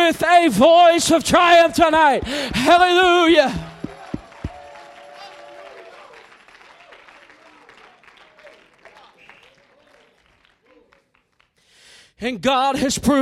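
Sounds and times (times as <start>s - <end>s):
speech: 0.1s - 3.7s, 12.2s - 13.1s
audience clapping hands: 2.2s - 11.8s
audience shouting: 2.9s - 6.9s.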